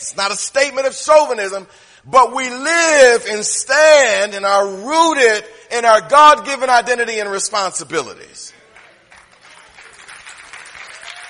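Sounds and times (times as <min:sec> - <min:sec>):
speech: 0:00.0 - 0:08.6
sermon audience clapping: 0:08.6 - 0:11.2.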